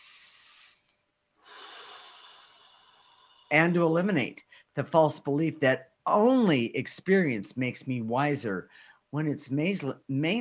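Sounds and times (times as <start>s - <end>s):
deep breath during a spoken affirmation exercise: 0.0s - 3.7s, 8.7s - 9.1s
speech: 3.5s - 10.3s.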